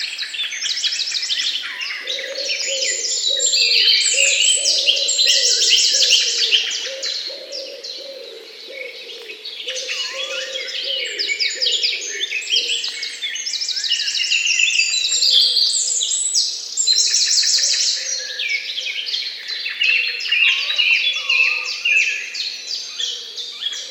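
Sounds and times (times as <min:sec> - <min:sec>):
birds chirping and trilling: 0:00.0 - 0:23.9
low cooing: 0:02.0 - 0:12.8.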